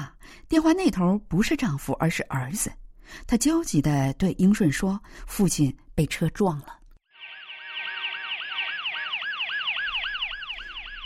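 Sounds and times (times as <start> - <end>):
speech: 0.5 - 6.8
ambulance siren: 7.1 - 11.0.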